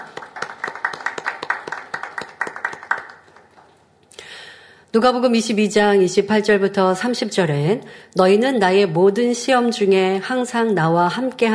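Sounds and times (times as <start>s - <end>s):
audience applause: 0.0s - 3.5s
speech: 4.9s - 11.5s.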